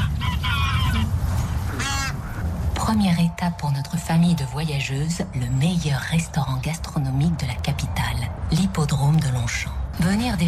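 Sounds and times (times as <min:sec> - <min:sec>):
migrating geese honking at the Longchamp racecourse in Paris: 0:00.0 - 0:02.5
constant low rumble of noise: 0:00.0 - 0:10.4
speech: 0:02.9 - 0:10.4.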